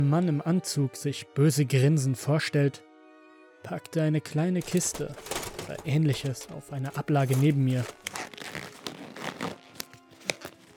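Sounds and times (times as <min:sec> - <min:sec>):
speech: 0:00.0 - 0:02.9, 0:03.6 - 0:08.2
rubber gloves being pulled on tightly: 0:04.6 - 0:10.7.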